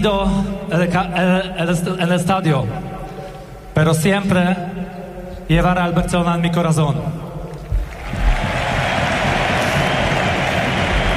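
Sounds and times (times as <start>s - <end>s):
speech: 0.0s - 3.0s, 3.8s - 7.2s
stadium crowd applause: 7.8s - 11.1s.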